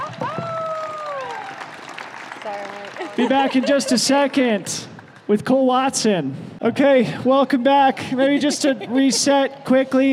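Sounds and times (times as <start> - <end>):
audience applause: 0.0 - 5.3
speech: 2.5 - 10.1
laughter: 2.7 - 4.8, 7.9 - 10.1.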